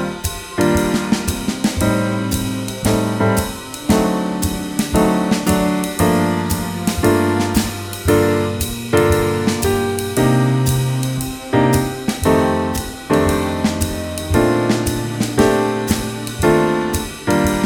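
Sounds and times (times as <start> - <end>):
music track in G minor: 0.0 - 17.6.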